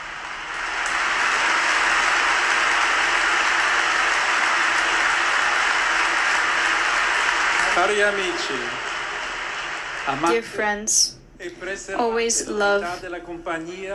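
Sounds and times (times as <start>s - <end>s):
large crowd applause: 0.0s - 10.6s
speech: 7.8s - 8.8s, 10.1s - 13.9s.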